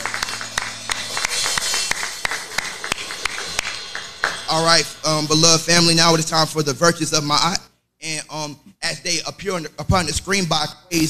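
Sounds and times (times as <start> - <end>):
audience hand clapping: 0.0 - 5.2
speech: 4.6 - 11.0.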